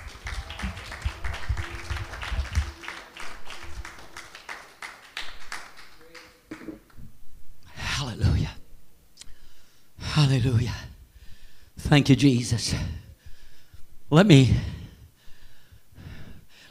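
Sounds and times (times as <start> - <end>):
crowd clapping hands in a rhythmic beat: 0.0 - 7.0
speech: 10.2 - 10.8, 11.9 - 13.0, 14.1 - 14.8.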